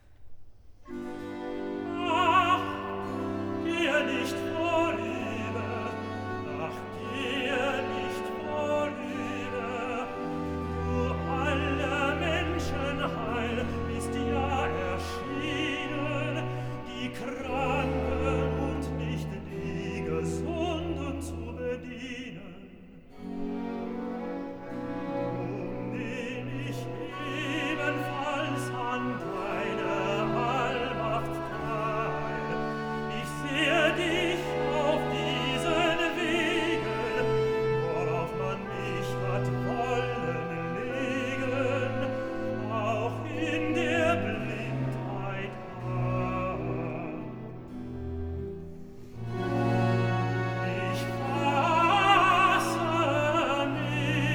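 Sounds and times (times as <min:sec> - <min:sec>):
tenor singing cantata recitative: 0:00.9 - 0:54.3.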